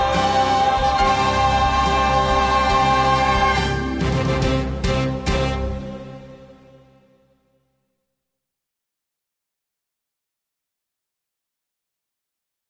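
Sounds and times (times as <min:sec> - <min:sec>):
instrumental praise music: 0:00.0 - 0:07.0.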